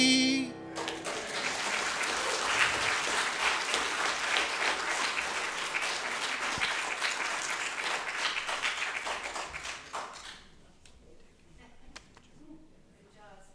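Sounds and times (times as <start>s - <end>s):
audience applause: 0.6s - 10.5s.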